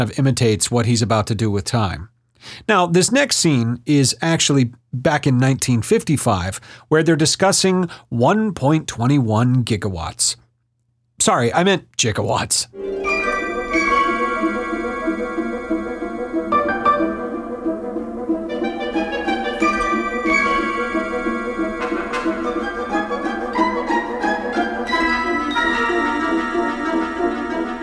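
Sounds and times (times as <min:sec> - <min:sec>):
speech: 0:00.0 - 0:10.4, 0:11.2 - 0:13.1
orchestral music imitating a ticking clock: 0:12.8 - 0:27.8.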